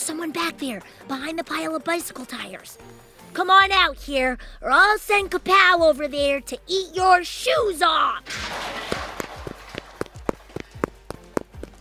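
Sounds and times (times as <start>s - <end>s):
speech: 0.0s - 8.8s
footsteps of someone in a yellow hazmat suit running past: 8.8s - 11.7s.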